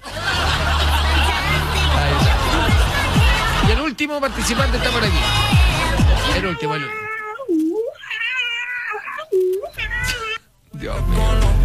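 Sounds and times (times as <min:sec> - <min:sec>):
laughter: 0:00.0 - 0:06.8
speech: 0:04.0 - 0:05.6, 0:06.3 - 0:07.1
female cat meowing: 0:06.5 - 0:10.4.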